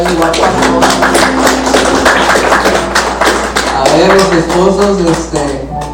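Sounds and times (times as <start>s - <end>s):
crowd applauding: 0.0s - 5.9s
speech: 0.1s - 1.4s, 4.0s - 5.4s.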